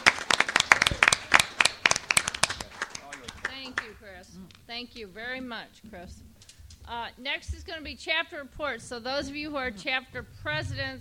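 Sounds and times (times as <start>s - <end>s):
crowd applause for the committee: 0.0s - 4.1s
speech: 4.8s - 6.3s, 6.9s - 10.9s.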